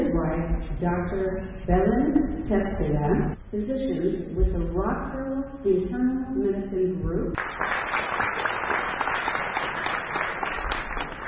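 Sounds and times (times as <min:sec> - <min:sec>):
speech: 0:00.8 - 0:08.8
applause in a hall after two physicians are introduced: 0:07.4 - 0:11.2.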